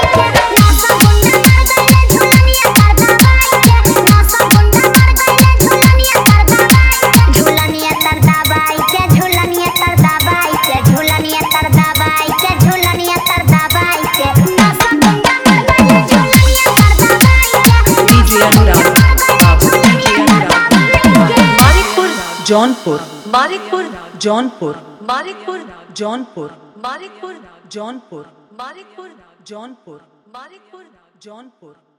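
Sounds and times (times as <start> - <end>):
Bhojpuri hard dholak with bass: 0.1 - 24.0.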